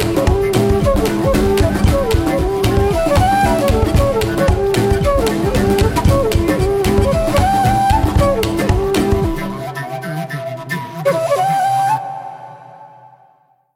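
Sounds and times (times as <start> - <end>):
wild flute jig: 0.0 - 13.5.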